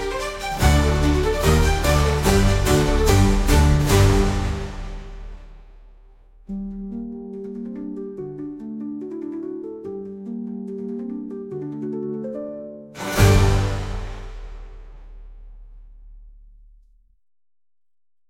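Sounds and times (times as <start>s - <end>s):
harpsichord: 0.0s - 5.4s, 6.5s - 15.0s.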